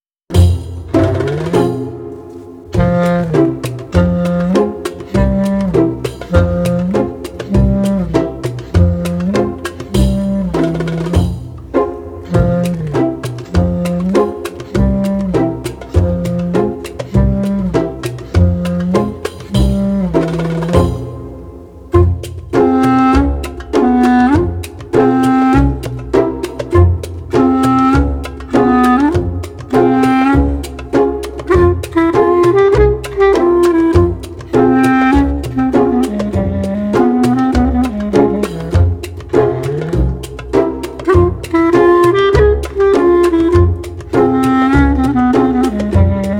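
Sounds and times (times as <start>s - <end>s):
pizzicato strings in alaturka style: 0.3s - 46.3s.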